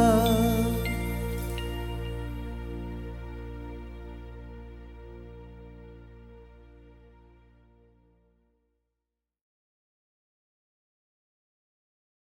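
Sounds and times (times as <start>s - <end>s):
person singing: 0.0s - 2.6s.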